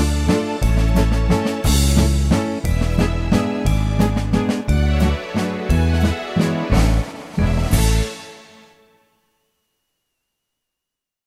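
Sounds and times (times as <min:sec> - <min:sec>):
Viennese waltz: 0:00.0 - 0:08.8.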